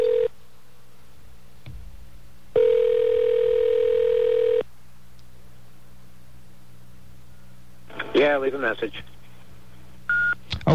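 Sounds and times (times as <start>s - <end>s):
telephone line ringing tone: 0.0s - 0.3s, 2.6s - 4.6s
speech: 8.2s - 9.2s.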